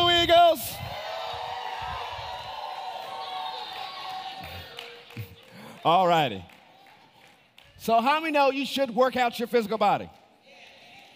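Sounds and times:
high shouts: 0.0 - 5.0
crowd cheering and clapping for teams: 0.8 - 8.4
speech: 5.8 - 6.6, 7.8 - 10.2.

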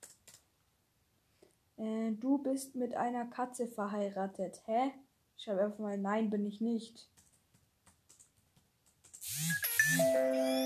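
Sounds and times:
speech: 1.8 - 7.1, 10.1 - 10.6
bright electronic notification chime: 9.4 - 10.6.

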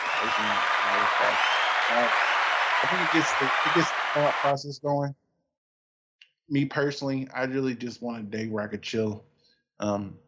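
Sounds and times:
laughter: 0.0 - 2.2, 2.8 - 5.1, 6.5 - 9.2
round of applause: 0.0 - 4.8
speech: 0.2 - 5.2, 6.5 - 10.2.

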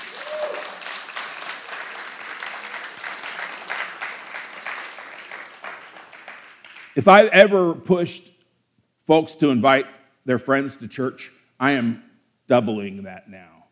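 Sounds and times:
audience applause: 0.0 - 7.0
speech: 7.0 - 8.3, 9.1 - 13.6.

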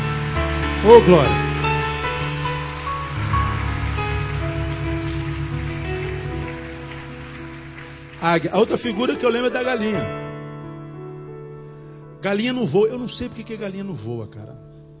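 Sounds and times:
audience applauding: 0.0 - 10.0
speech: 0.8 - 1.4, 8.2 - 10.2, 12.2 - 14.7.

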